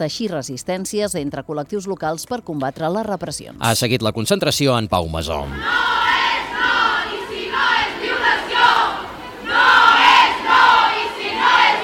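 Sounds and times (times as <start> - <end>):
speech: 0.0 - 6.3
crowd chanting feminist slogans at a Women's Day demonstration in Olot: 5.5 - 11.8.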